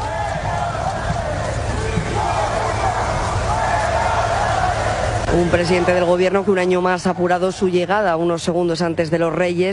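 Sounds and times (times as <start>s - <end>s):
large crowd booing an arriving politician: 0.0s - 7.8s
speech: 5.4s - 9.7s.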